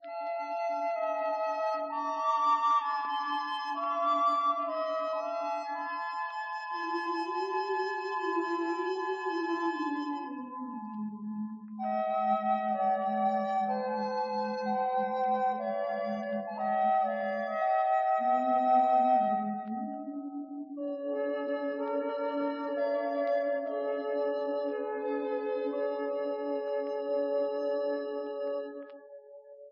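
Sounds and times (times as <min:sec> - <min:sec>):
sad flute melody: 0:00.0 - 0:29.2.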